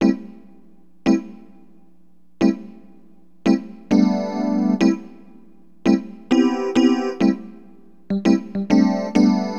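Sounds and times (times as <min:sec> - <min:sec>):
Rhodes electric piano: 0:00.0 - 0:00.4, 0:03.4 - 0:09.5.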